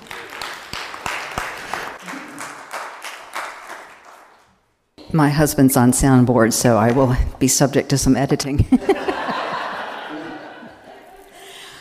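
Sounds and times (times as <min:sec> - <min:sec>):
audience clapping for a speaker: 0:00.0 - 0:04.8
speech: 0:05.1 - 0:09.4
laughter: 0:08.6 - 0:11.7.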